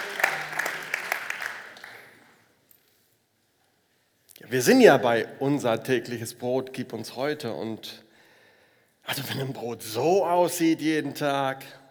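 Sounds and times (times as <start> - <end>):
audience applause: 0.0 - 2.4
speech: 4.5 - 8.0, 9.1 - 11.8.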